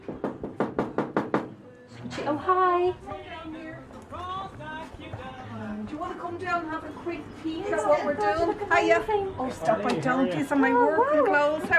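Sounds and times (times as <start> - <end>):
knuckles knocking on a door in Dublin's Temple Bar: 0.0 - 1.6
speech: 2.1 - 3.6, 6.1 - 11.7.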